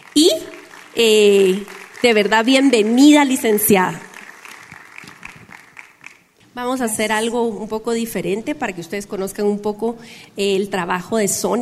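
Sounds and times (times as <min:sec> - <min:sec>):
audience applause: 0:00.0 - 0:06.3
speech: 0:00.2 - 0:04.1, 0:06.6 - 0:11.6.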